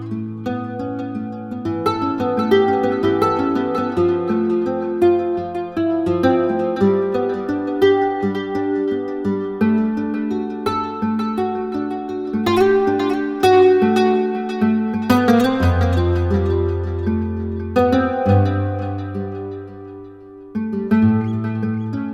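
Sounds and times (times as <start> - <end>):
nylon-string guitars shimmer: 0.0 - 22.1.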